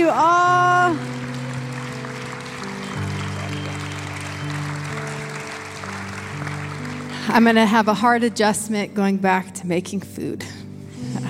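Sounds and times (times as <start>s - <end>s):
audience applause: 0.5s - 8.2s
speech: 7.3s - 11.2s.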